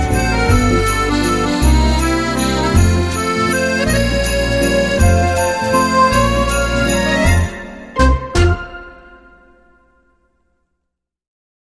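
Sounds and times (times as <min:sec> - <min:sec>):
sleigh bells: 0:00.0 - 0:08.8
waltz music: 0:00.0 - 0:10.0.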